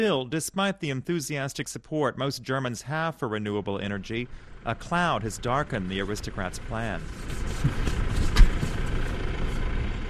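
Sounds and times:
speech: 0.0s - 7.9s
tractor engine running in rural fields near Feldkirchen: 3.4s - 10.0s.

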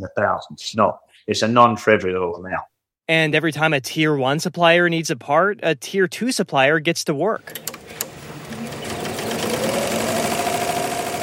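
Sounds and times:
speech: 0.0s - 7.7s
embroidery machine at San Diego Aircraft Interiors seat cover factory, Chula Vista, California: 7.5s - 11.2s.

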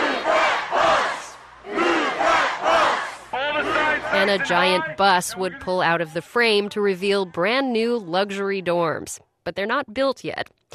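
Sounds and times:
crowd of people shouting: 0.0s - 6.2s
speech: 4.2s - 10.7s.

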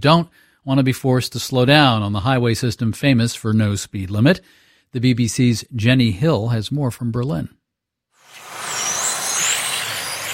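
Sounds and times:
speech: 0.0s - 7.6s
tiny electric cars racing around a mini racetrack: 8.2s - 10.3s.

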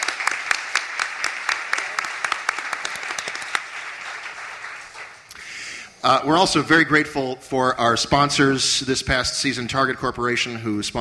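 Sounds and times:
audience applause for guests: 0.0s - 5.4s
speech: 6.0s - 10.9s.

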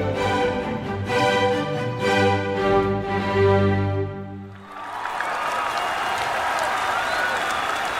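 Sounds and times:
sustained musical chords from a rock band and orchestra: 0.0s - 4.5s
park audience cheering and applauding: 4.4s - 7.9s.

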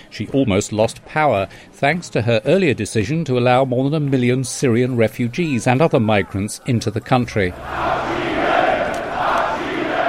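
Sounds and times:
speech: 0.2s - 8.2s
angry crowd shouting at an anti-immigration rally in Germany: 7.5s - 10.0s.

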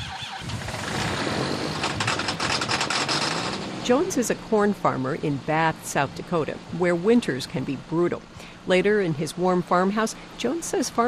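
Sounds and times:
tractor engine struggling to start in cold: 0.0s - 4.5s
speech: 3.9s - 11.0s.

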